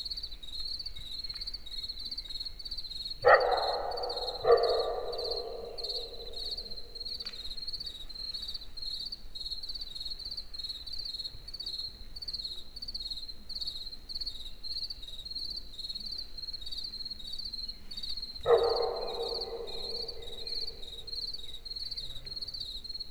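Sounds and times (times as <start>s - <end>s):
crickets chirping in a forest in the evening: 1.6s - 23.0s.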